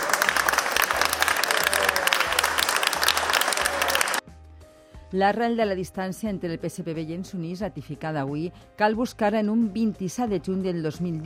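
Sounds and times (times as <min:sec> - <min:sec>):
supporters applauding in the street: 0:00.0 - 0:04.2
speech: 0:05.1 - 0:11.2.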